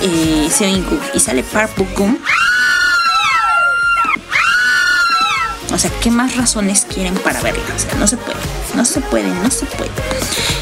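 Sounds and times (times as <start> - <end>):
speech: 0.0 - 2.5, 5.8 - 10.6
excited fan screaming: 2.2 - 5.6.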